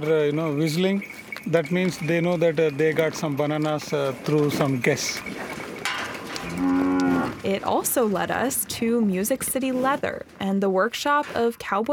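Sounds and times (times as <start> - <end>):
speech: 0.0 - 5.6, 6.5 - 11.9
cow mooing at a cow sanctuary: 6.3 - 7.5.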